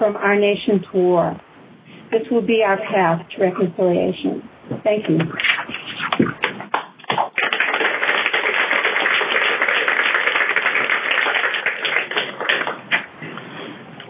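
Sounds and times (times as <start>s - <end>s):
speech: 0.0s - 1.5s, 2.1s - 5.5s
audience applause: 6.7s - 13.1s.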